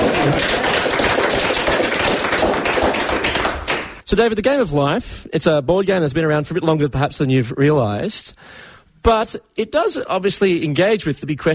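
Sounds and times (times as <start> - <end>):
audience round of applause: 0.0 - 4.0
speech: 4.1 - 11.5.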